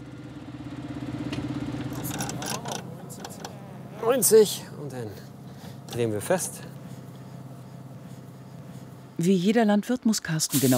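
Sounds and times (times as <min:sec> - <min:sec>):
tractor engine idling: 0:00.0 - 0:09.5
speech: 0:04.1 - 0:05.3, 0:05.9 - 0:06.7, 0:09.2 - 0:10.7
short bursts of hissing or rattling noise: 0:10.5 - 0:10.7.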